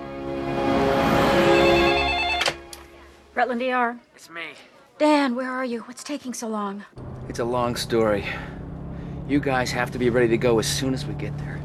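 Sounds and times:
telephone ringing in a hospital emergency room: 1.4s - 2.7s
speech: 3.4s - 8.6s, 9.3s - 11.6s.

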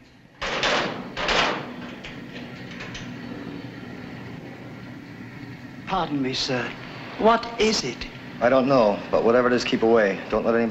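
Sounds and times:
metal locker lid and locker door clanging shut: 0.4s - 3.1s
speech: 5.9s - 10.7s.

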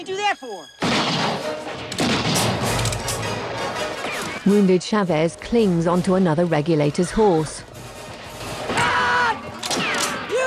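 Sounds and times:
speech: 0.0s - 7.7s
gunshot in a film shootout: 0.8s - 2.8s, 9.6s - 10.3s.

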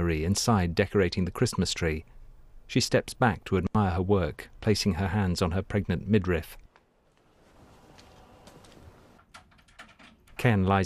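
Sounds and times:
speech: 0.0s - 6.6s, 10.4s - 10.8s
door opening: 7.2s - 10.4s.

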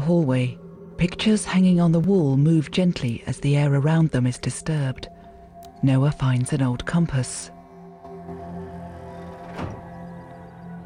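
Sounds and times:
speech: 0.1s - 5.1s, 5.8s - 7.6s
door closing: 9.2s - 10.3s.

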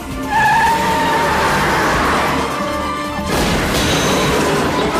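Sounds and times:
tires squealing: 0.1s - 4.8s
metallic car crash: 3.2s - 4.9s.

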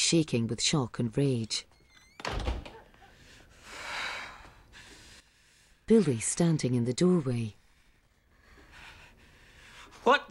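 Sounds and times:
speech: 0.1s - 2.5s, 5.9s - 7.6s, 10.0s - 10.3s
kitchen back door thudding shut: 2.2s - 2.9s.

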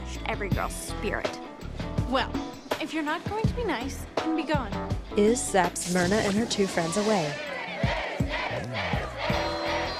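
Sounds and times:
speech: 0.3s - 8.0s
crowd cheering: 6.8s - 9.9s.

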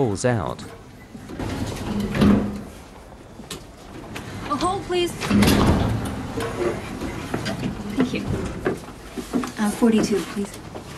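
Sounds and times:
speech: 0.0s - 0.8s, 4.9s - 8.8s, 9.6s - 10.7s
lift doors sliding open: 1.0s - 8.7s.

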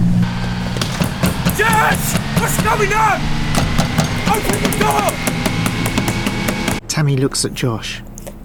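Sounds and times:
yacht engine running as the boat gets under way: 0.1s - 6.8s
speech: 2.0s - 3.4s, 4.3s - 5.4s, 7.0s - 8.1s.

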